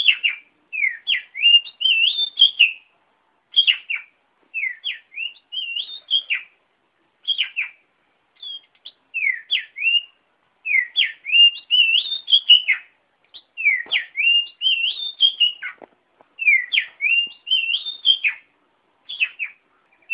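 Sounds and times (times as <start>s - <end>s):
Oriental magpie-robin song: 0.0s - 2.9s, 3.5s - 6.6s, 7.2s - 20.1s.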